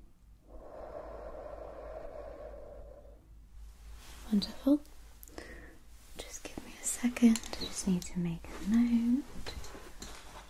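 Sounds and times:
deep breath in and out during a simulated cranial nerve examination: 0.4s - 3.6s, 5.3s - 5.9s
speech: 4.3s - 4.9s, 7.0s - 9.6s.

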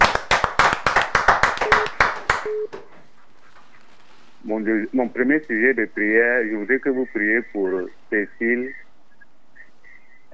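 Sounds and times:
audience applauding: 0.0s - 2.5s
speech: 4.5s - 8.8s.

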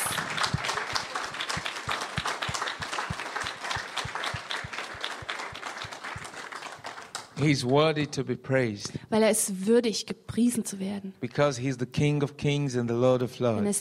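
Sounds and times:
audience applause: 0.0s - 7.6s
speech: 7.4s - 13.8s.

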